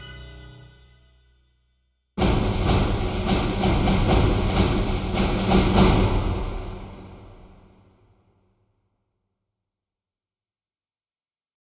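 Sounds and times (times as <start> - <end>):
thunder drum: 2.2 - 8.0.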